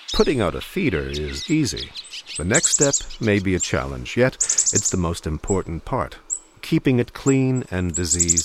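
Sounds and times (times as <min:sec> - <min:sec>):
pine siskin chatter: 0:00.2 - 0:05.0
speech: 0:00.2 - 0:08.4.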